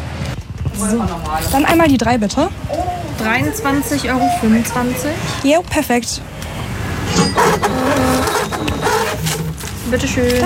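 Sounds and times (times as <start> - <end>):
speech: 0.8 - 6.6, 9.9 - 10.4
receipt printer printing: 7.4 - 10.4.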